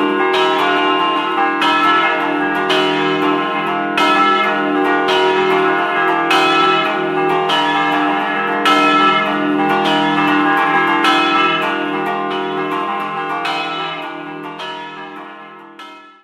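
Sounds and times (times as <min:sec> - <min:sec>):
church bells ringing: 0:00.0 - 0:16.2.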